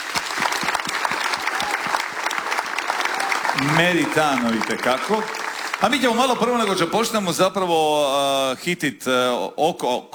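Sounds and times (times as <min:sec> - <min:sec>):
audience clapping at a Croatian popular music festival: 0:00.0 - 0:07.2
speech: 0:03.6 - 0:10.1.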